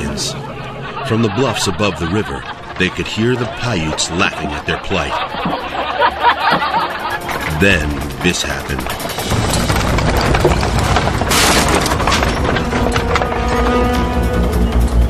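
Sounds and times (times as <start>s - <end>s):
laughter: 0.0s - 9.0s
speech: 1.1s - 6.3s, 7.6s - 9.4s
wooden wagon axle breaking: 8.9s - 15.0s.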